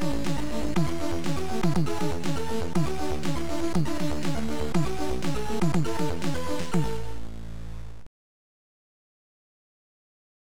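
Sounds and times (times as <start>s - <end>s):
1-bit AY digital chiptune music: 0.0s - 7.2s.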